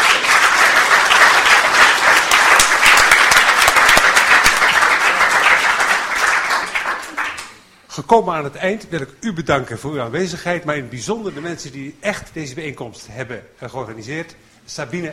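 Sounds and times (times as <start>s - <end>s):
large audience applause: 0.0s - 7.6s
speech: 8.1s - 15.1s.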